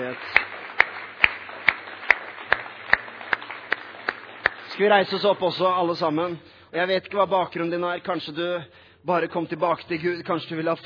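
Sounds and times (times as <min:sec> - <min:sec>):
speech: 0:00.0 - 0:00.4, 0:04.8 - 0:10.8
steady evenly paced clapping: 0:00.0 - 0:05.4.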